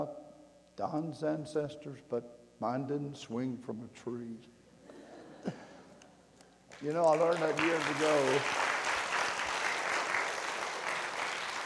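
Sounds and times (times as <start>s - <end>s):
speech: 0.8s - 4.6s, 5.4s - 5.7s, 6.8s - 8.6s
audience applause: 6.7s - 11.6s.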